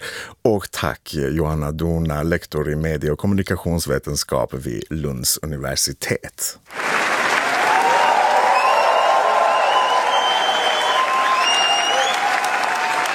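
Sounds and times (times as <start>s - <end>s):
speech: 0.4s - 7.0s
standing ovation applause at film premiere: 6.7s - 13.1s
faint whistles and cheers: 7.2s - 13.1s.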